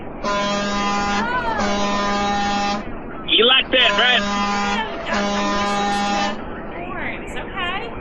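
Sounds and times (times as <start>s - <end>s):
horn blasts: 0.0s - 6.4s
person talking: 1.2s - 1.9s, 3.3s - 6.4s.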